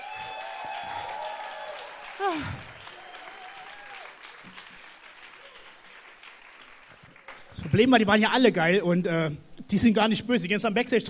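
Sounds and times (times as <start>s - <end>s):
cheers: 0.0s - 6.2s
crowd applauding: 0.0s - 8.0s
speech: 2.2s - 2.7s, 7.7s - 11.0s.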